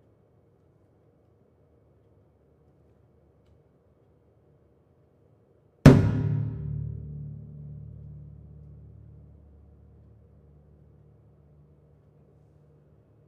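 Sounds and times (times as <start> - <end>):
double bass solo: 5.9 - 12.0.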